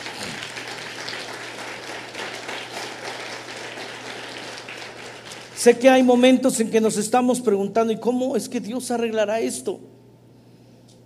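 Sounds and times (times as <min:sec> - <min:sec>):
audience applause: 0:00.0 - 0:05.8
speech: 0:05.6 - 0:09.9.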